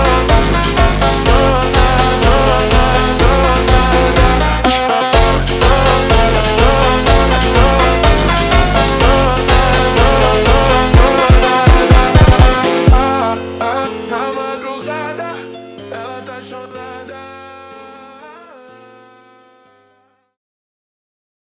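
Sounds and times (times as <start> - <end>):
phonk track slowed and reverbed: 0.0 - 13.2.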